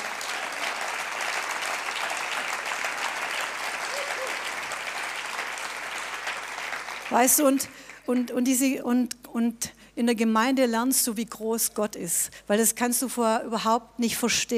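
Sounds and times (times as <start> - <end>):
audience applause: 0.0 - 8.1
speech: 7.1 - 14.5.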